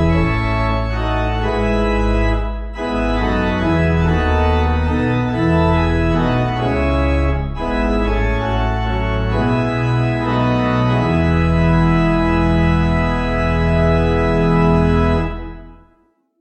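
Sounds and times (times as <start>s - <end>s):
gloomy pipe organ piece: 0.0s - 16.0s.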